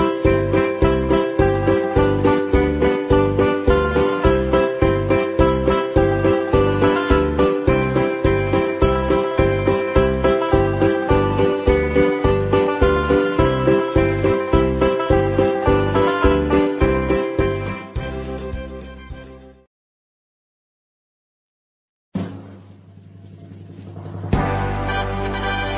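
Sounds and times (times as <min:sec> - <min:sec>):
ukulele: 0:00.0 - 0:19.2, 0:24.3 - 0:25.7.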